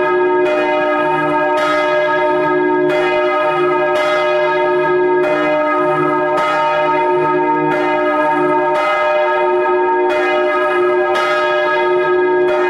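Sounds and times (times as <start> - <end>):
church bells ringing: 0.0 - 12.6.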